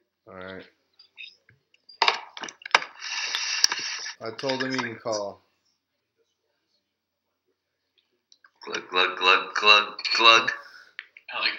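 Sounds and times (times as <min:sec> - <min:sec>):
speech: 0:00.3 - 0:00.8, 0:04.2 - 0:05.5, 0:09.6 - 0:10.6
chair creaking and squeaking under shifting weight: 0:02.0 - 0:05.1.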